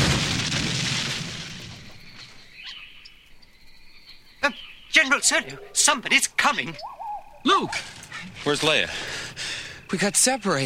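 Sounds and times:
speeder bike crashing into tree: 0.0s - 2.5s
speech: 4.4s - 10.6s.

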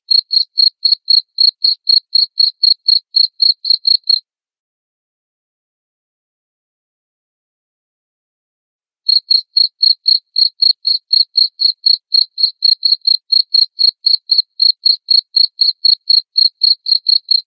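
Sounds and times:
cricket chirping: 0.1s - 4.2s, 9.1s - 17.4s.

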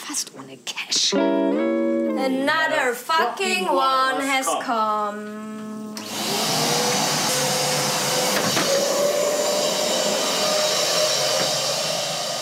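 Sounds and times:
speech: 0.1s - 5.9s
vacuum cleaner sucking up crumbs of an organic rice cake: 5.5s - 12.3s.

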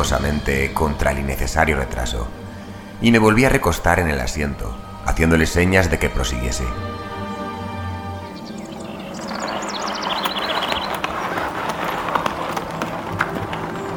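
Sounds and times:
speech: 0.0s - 2.4s, 3.0s - 7.0s
constant rumble of carriage wheels: 0.0s - 13.9s
horses' hooves trotting: 0.0s - 13.9s
high chirps: 2.4s - 12.0s.

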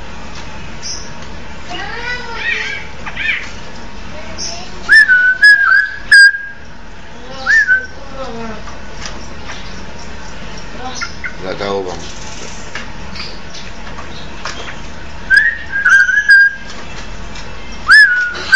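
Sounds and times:
Oriental magpie-robin singing whistled phrases with clicking notes: 0.8s - 1.2s, 2.3s - 3.5s, 4.3s - 6.7s, 7.3s - 8.0s, 9.2s - 11.5s, 13.1s - 16.7s, 17.7s - 18.5s.

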